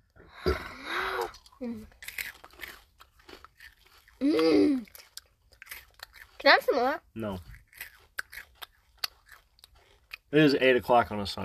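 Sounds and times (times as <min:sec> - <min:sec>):
voiced murmurs and gasps: 0:00.2 - 0:01.8
chewing popcorn-flavored jelly beans: 0:01.2 - 0:11.4
speech: 0:01.6 - 0:02.0, 0:06.4 - 0:07.5, 0:10.3 - 0:11.4.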